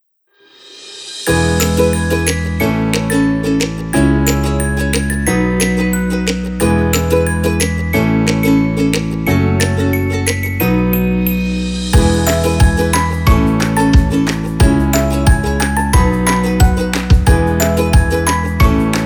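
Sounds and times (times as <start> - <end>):
sunny spring music: 1.2 - 19.0.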